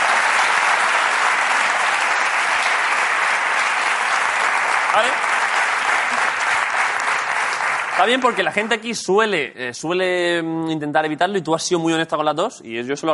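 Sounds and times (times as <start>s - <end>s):
applause: 0.0s - 9.0s
speech: 5.0s - 5.4s, 8.0s - 13.1s.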